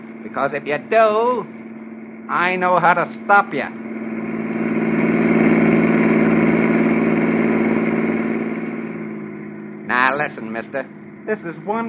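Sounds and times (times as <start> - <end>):
car engine running while driving: 0.0 - 11.8
speech: 0.3 - 1.6, 2.3 - 4.3, 10.2 - 11.8.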